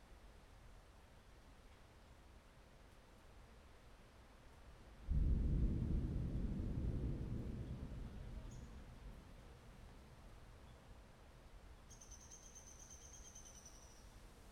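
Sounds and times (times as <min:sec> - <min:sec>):
thunderstorm: 0:05.1 - 0:10.6.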